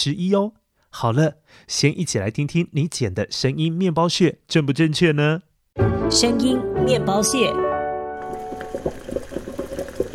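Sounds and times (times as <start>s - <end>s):
speech: 0.0s - 7.7s
water boiling while cooking tangyuan: 8.2s - 10.1s.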